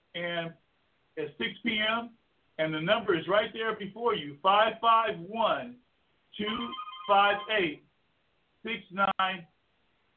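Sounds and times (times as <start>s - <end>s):
speech: 0.2s - 0.6s, 1.2s - 7.8s, 8.6s - 9.5s
telephone ringtone melody: 6.4s - 7.7s.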